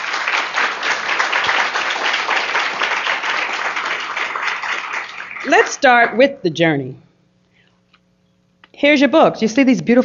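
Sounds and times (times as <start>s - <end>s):
round of applause: 0.0s - 6.2s
speech: 5.5s - 7.0s, 8.8s - 10.0s.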